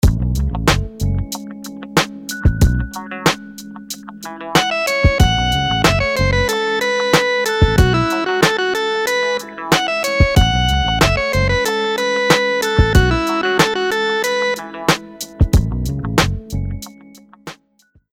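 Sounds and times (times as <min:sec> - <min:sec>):
dotted eighth rhythms: 0:00.0 - 0:17.4.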